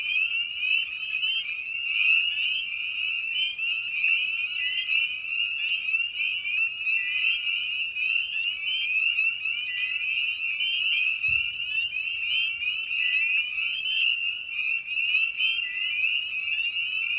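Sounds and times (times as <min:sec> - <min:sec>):
spring peepers calling: 0:00.0 - 0:17.1
low thump: 0:11.3 - 0:11.6.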